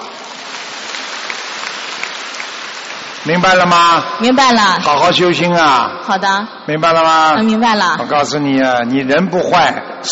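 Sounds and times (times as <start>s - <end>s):
applause: 0.0s - 4.0s
speech: 3.2s - 10.1s.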